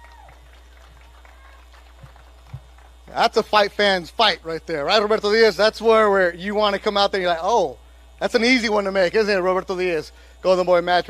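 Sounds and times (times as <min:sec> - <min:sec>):
audience applause: 0:00.0 - 0:03.2
speech: 0:03.1 - 0:11.0.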